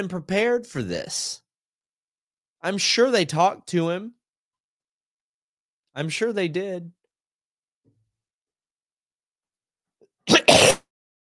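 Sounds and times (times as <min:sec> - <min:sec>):
speech: 0:00.0 - 0:01.4, 0:02.6 - 0:04.2, 0:06.0 - 0:07.0
cough: 0:10.3 - 0:10.9.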